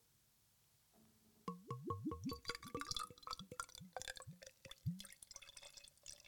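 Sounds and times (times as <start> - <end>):
beer pouring from a bottle into a glass: 1.6 - 6.2.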